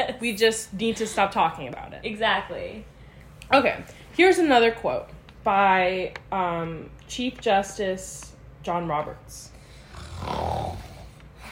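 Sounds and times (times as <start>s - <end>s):
speech: 0.2s - 2.9s, 3.5s - 9.5s, 10.2s - 10.9s
rough nasal snort: 9.8s - 11.2s.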